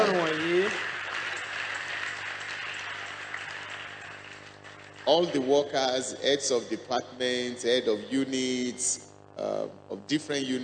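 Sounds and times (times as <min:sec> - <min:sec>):
audience clapping: 0:00.0 - 0:05.8
speech: 0:05.1 - 0:10.6.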